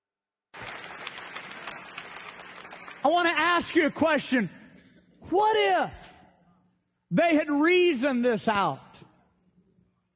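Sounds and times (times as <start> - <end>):
audience clapping: 0.5 - 4.2
speech: 3.0 - 4.6, 5.3 - 6.0, 7.1 - 8.8.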